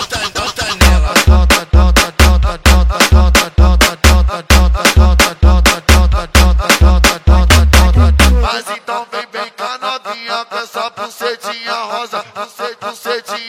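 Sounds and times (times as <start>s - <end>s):
mega funk bass: 0.8s - 8.5s.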